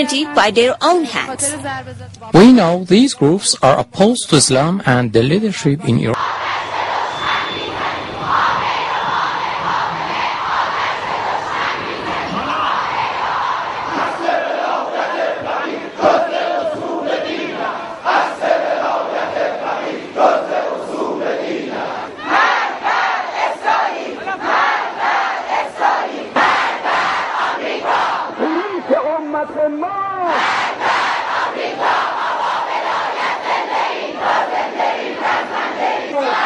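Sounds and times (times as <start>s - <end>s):
speech: 0.0s - 6.6s
crowd of demonstrators chanting slogans: 6.2s - 29.1s, 30.2s - 36.4s.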